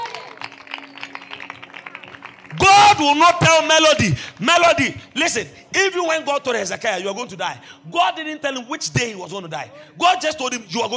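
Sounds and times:
audience clapping: 0.0s - 4.9s
speech: 2.5s - 10.9s.

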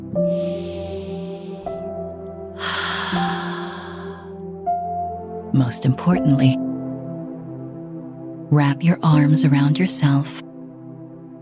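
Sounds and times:
soft sustained tonal music bed: 0.0s - 11.3s
speech: 0.2s - 0.7s, 5.6s - 6.7s, 8.5s - 10.4s
long deep breaths during a guided morning positivity meditation: 0.3s - 2.0s, 2.6s - 4.4s.

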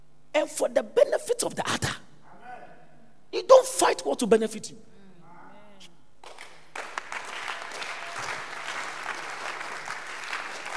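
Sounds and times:
speech: 0.4s - 2.0s, 3.3s - 4.9s
audience clapping: 6.2s - 10.7s.

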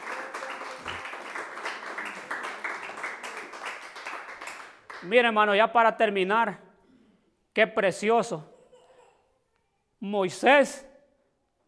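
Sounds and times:
audience applauding: 0.0s - 5.1s
speech: 5.0s - 6.6s, 7.6s - 8.5s, 10.0s - 10.9s.

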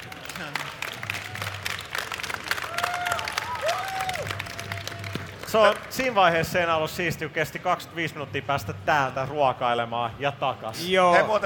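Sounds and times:
audience applause: 0.0s - 6.4s
speech: 0.4s - 0.8s, 5.5s - 11.4s.

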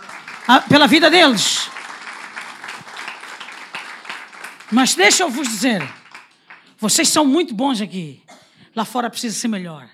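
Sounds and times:
crowd applause: 0.0s - 6.8s
speech: 0.5s - 1.8s, 4.7s - 6.0s, 6.8s - 9.9s.

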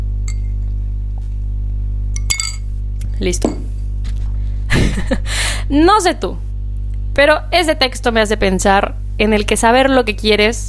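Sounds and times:
steady low hum: 0.0s - 10.6s
glass clinking while drinking water: 0.3s - 0.6s, 2.2s - 2.7s
speech: 3.2s - 3.6s, 5.0s - 6.5s, 7.2s - 10.6s
laughter: 4.7s - 5.3s.

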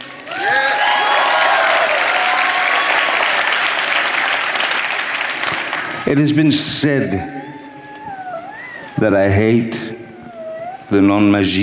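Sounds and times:
crowd applauding: 0.0s - 8.0s
speech: 6.1s - 7.4s, 9.0s - 10.0s, 10.9s - 11.6s.

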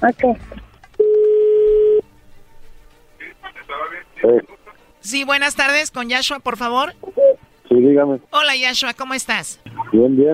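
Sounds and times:
speech: 0.0s - 0.7s, 4.2s - 10.3s
telephone call being dialed: 1.0s - 2.0s.

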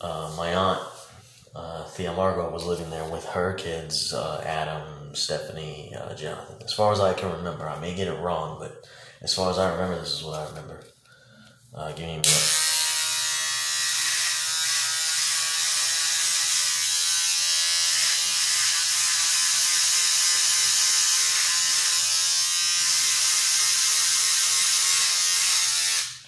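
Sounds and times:
speech: 0.0s - 11.0s, 11.7s - 12.6s
electric shaver buzzing while shaving off a thick beard: 12.2s - 26.2s.

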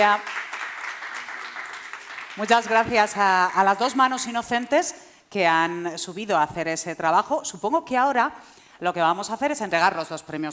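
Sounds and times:
speech: 0.0s - 0.3s, 2.4s - 10.5s
audience applause: 0.1s - 2.9s.

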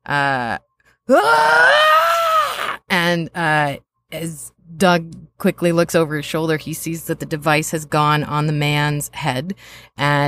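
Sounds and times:
speech: 0.1s - 1.8s, 3.1s - 10.2s
voice imitating a man's blood-curdling cry: 1.1s - 2.9s.

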